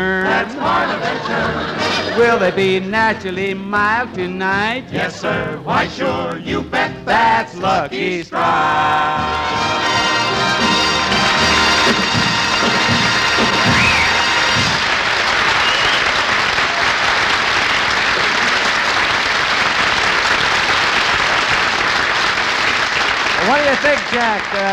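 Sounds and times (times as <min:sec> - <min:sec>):
laughter: 0:00.4 - 0:02.9
speech: 0:00.4 - 0:09.6, 0:23.4 - 0:24.7
audience applause: 0:10.7 - 0:24.7.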